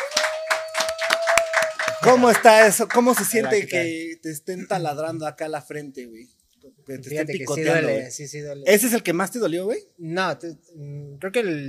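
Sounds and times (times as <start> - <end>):
applause: 0.0 - 3.9
speech: 2.0 - 11.6.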